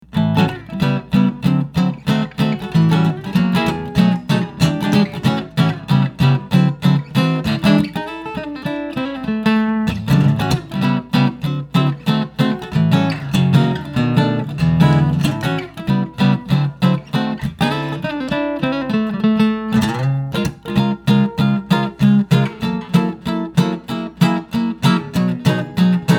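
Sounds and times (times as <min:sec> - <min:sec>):
archtop guitars playing: 0:00.0 - 0:26.1.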